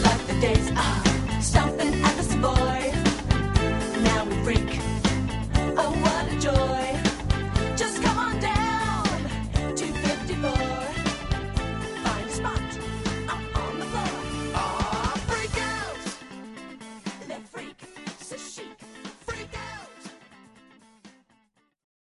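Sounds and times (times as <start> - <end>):
cover band playing: 0.0 - 17.2.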